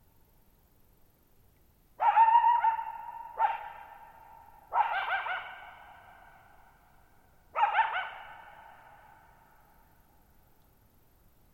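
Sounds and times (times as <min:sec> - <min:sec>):
coyote howling and barking: 0:02.0 - 0:06.4, 0:07.6 - 0:09.3.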